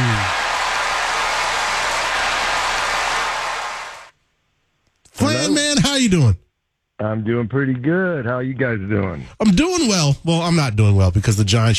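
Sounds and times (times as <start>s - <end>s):
audience applause welcoming a guest on stage: 0.0s - 4.1s
speech: 6.1s - 11.7s.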